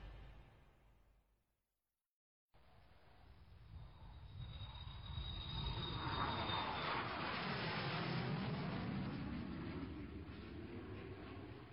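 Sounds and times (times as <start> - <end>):
large passenger airliner taking off from St Petersburg airport: 3.7 - 11.7.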